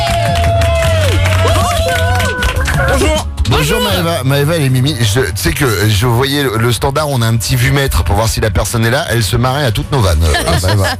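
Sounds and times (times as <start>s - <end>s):
applause: 0.0s - 3.3s
cheering: 0.0s - 3.3s
speech: 3.9s - 10.9s
laughter: 10.0s - 10.9s.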